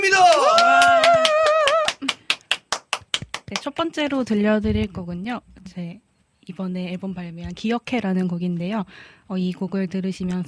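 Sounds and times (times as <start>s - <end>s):
applause welcoming the live performers: 0.1s - 3.7s
speech: 3.9s - 10.4s.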